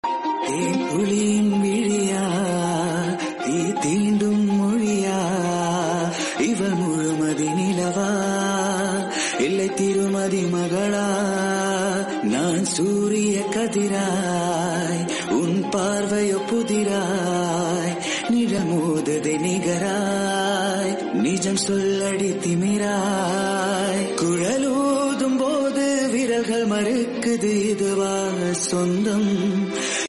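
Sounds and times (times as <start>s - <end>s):
Tamil South Indian music: 0.0s - 30.0s.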